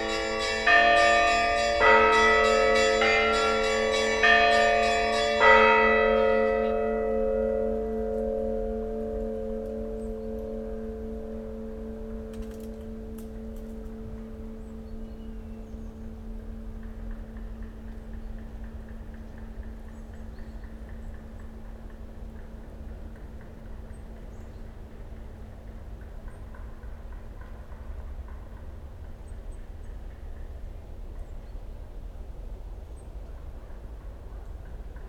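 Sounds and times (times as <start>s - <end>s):
bells ringing: 0.0s - 15.0s.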